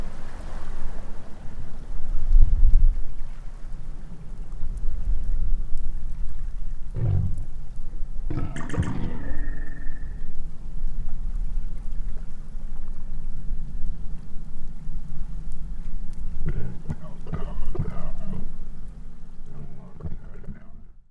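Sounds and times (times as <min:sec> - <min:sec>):
minke whale making low pulsed sounds: 0:00.8 - 0:21.0.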